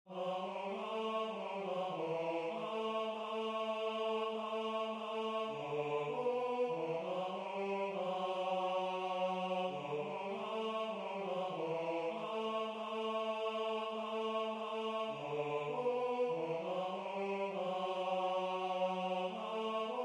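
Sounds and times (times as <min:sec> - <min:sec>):
tenor singing: 0:00.1 - 0:20.0.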